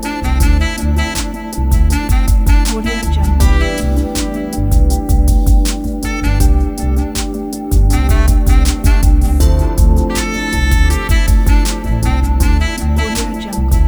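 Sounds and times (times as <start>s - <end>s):
ambient background improvisation: 0.0s - 13.8s.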